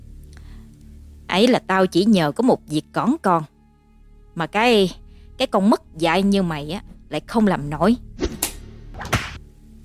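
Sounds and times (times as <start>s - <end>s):
speech: 1.4s - 3.5s, 4.4s - 8.4s
whip lashing through the air: 8.2s - 9.4s.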